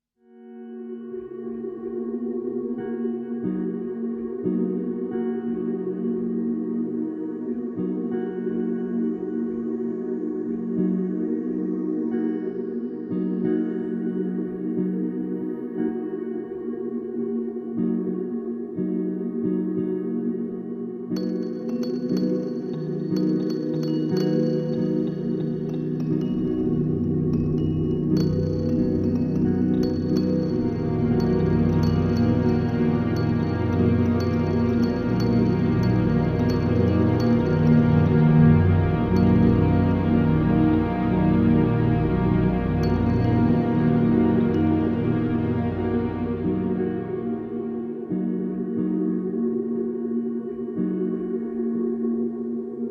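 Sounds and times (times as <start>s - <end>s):
improvised music: 1.0s - 52.8s.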